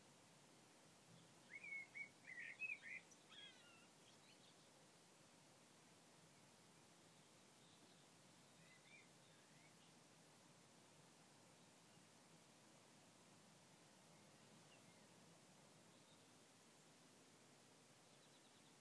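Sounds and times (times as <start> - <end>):
early morning birds outside a window: 1.1 - 5.0, 6.2 - 10.0, 13.8 - 16.5, 18.0 - 18.7.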